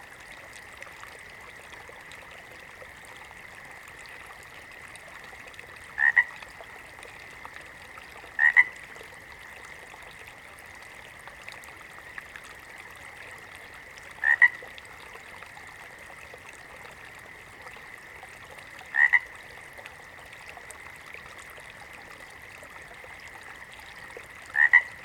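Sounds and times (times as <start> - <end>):
water frog giving short paired croaks: 5.9 - 6.4, 8.3 - 8.8, 14.2 - 14.7, 18.8 - 19.5, 24.3 - 25.0.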